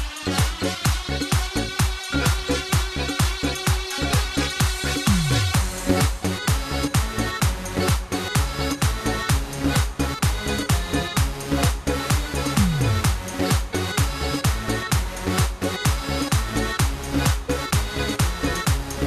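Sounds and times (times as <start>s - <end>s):
instrumental music: 0.0s - 19.0s.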